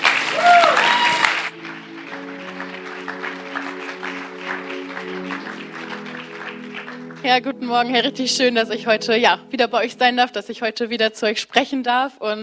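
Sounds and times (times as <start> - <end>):
thunderous applause: 0.0 - 7.8
speech: 7.2 - 12.4.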